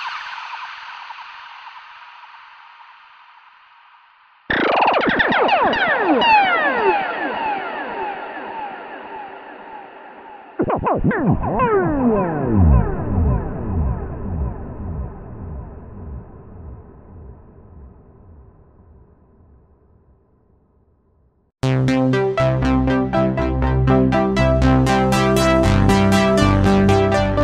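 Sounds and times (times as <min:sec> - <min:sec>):
ZynAddSubFX synthesizer: 0:04.5 - 0:17.6, 0:21.6 - 0:27.4.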